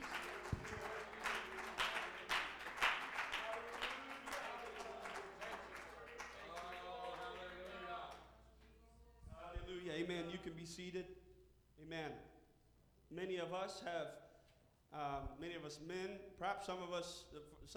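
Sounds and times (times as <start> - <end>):
congregation clapping hands: 0.0 - 8.3
speech: 10.1 - 11.2, 11.9 - 12.4, 13.1 - 14.2, 14.9 - 17.7.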